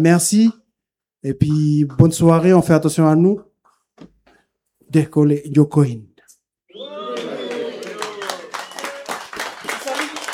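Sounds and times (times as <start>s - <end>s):
speech: 0.0s - 0.6s, 1.2s - 4.1s, 4.9s - 6.1s
voices cheering and calling out: 6.7s - 10.3s
audience applause: 6.8s - 10.3s.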